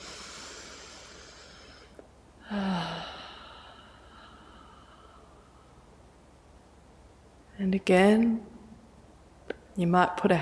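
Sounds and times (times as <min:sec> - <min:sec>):
deep breath in: 0:00.0 - 0:05.8
steady hiss: 0:00.0 - 0:07.6
speech: 0:07.6 - 0:08.5, 0:09.8 - 0:10.3.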